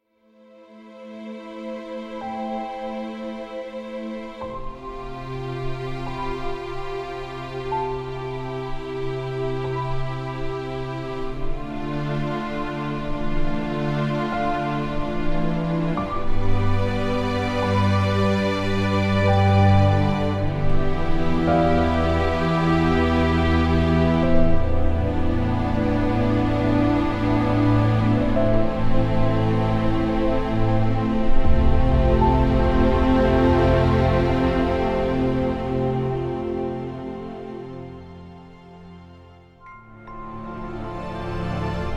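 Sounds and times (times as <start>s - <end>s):
instrumental music: 0.1s - 41.9s.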